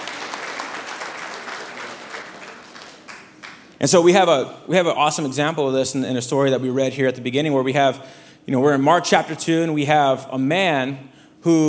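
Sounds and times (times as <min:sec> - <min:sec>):
audience applause: 0:00.0 - 0:03.8
speech: 0:03.8 - 0:11.6.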